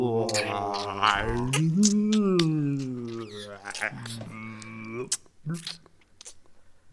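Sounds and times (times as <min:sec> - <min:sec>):
hippopotamus: 0:00.2 - 0:06.4.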